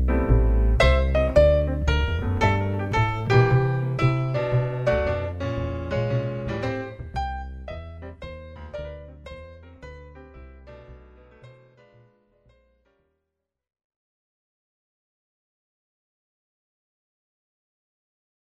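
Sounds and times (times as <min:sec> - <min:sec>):
jazz music: 0:00.0 - 0:12.1.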